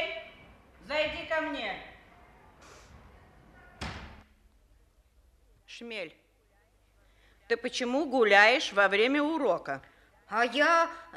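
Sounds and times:
speech: 0:01.4 - 0:01.9, 0:05.8 - 0:06.2, 0:07.5 - 0:11.1
door of a school's deputy head office opening onto a corridor: 0:02.6 - 0:04.3
loud heavy bang with a deep thud: 0:03.7 - 0:04.3.

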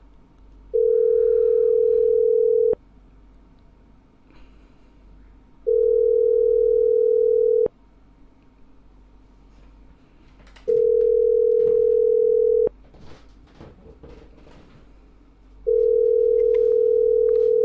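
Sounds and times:
quiet telephone line noise: 0:00.0 - 0:14.8, 0:15.4 - 0:17.6
phone ringback tones while calling a debt collector: 0:00.8 - 0:02.8, 0:05.7 - 0:07.7, 0:10.7 - 0:12.7, 0:15.7 - 0:17.6.

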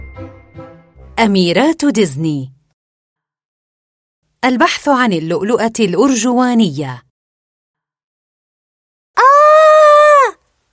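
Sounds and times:
speech: 0:01.2 - 0:02.6, 0:04.4 - 0:07.0
girl screaming: 0:09.2 - 0:10.4.

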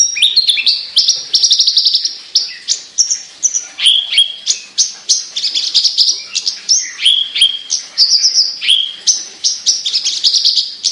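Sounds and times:
Javan bush lark singing: 0:00.0 - 0:10.9.

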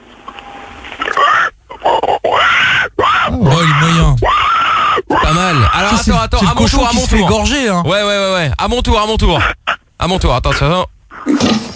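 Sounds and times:
person imitating a pig's squeal: 0:01.2 - 0:07.5, 0:09.3 - 0:09.9
speech: 0:06.2 - 0:11.6.

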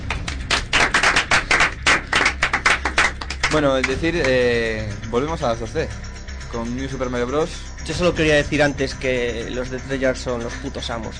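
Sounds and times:
short round of applause from a few people: 0:00.0 - 0:04.4
speech: 0:03.5 - 0:11.1.

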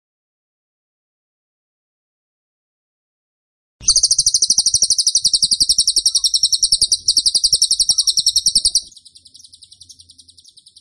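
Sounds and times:
bird shrill chirps: 0:03.8 - 0:10.7.

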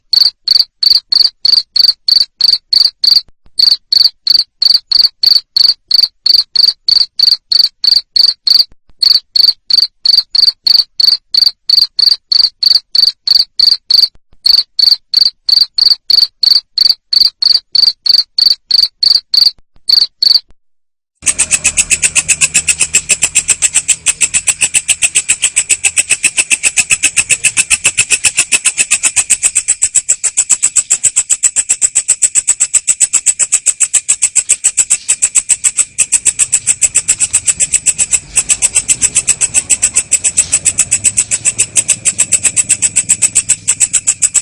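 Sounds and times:
cricket chirping: 0:00.0 - 0:20.5, 0:21.2 - 0:44.4
harsh hissing high-pitched noise: 0:21.2 - 0:43.8.

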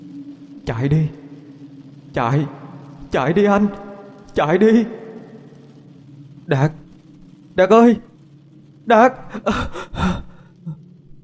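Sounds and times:
speech: 0:00.7 - 0:01.2, 0:02.1 - 0:03.8, 0:04.4 - 0:05.0, 0:06.5 - 0:06.8, 0:07.6 - 0:08.1, 0:08.8 - 0:10.2
person panting heavily after waking from a nightmare: 0:09.4 - 0:10.5.

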